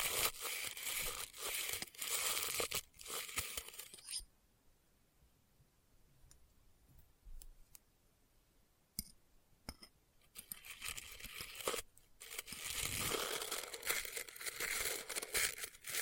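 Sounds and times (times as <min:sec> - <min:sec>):
crinkling and scraping in test tubes: 0:00.0 - 0:04.2, 0:10.3 - 0:16.0.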